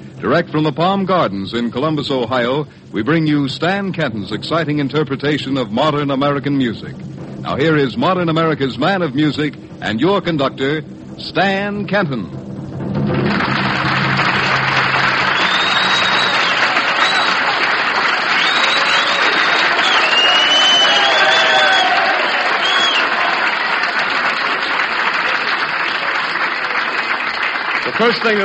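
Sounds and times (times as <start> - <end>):
speech: 0.2 - 12.4, 28.0 - 28.4
loud applause from a large audience: 13.1 - 28.4
scattered whistles and cheers: 14.3 - 28.4.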